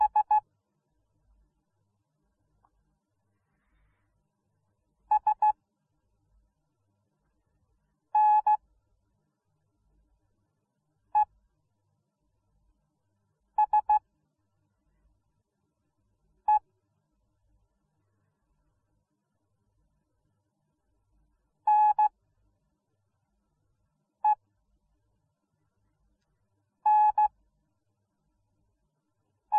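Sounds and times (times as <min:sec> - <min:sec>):
morse code beeps: 0:00.0 - 0:00.4, 0:05.1 - 0:05.5, 0:08.2 - 0:08.6, 0:13.6 - 0:14.0, 0:21.7 - 0:22.1, 0:26.9 - 0:27.3.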